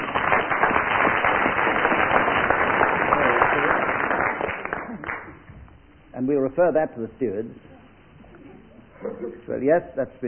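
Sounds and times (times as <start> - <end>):
audience applause: 0.0 - 5.5
speech: 6.3 - 7.7, 9.0 - 10.2.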